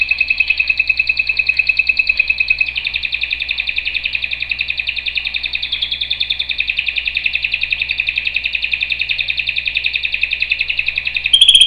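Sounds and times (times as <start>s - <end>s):
canary singing trills: 0.0s - 11.6s.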